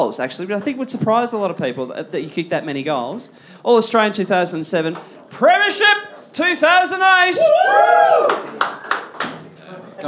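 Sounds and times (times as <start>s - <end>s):
speech: 0.0s - 8.8s
live audience applause: 7.9s - 9.3s.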